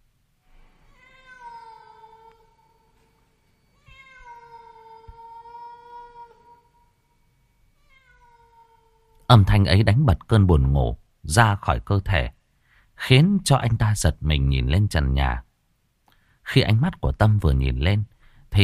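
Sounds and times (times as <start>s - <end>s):
mournful cat meowing: 0.9s - 2.9s, 3.8s - 6.9s, 7.8s - 9.3s
speech: 9.3s - 12.4s, 13.0s - 15.5s, 16.5s - 18.6s.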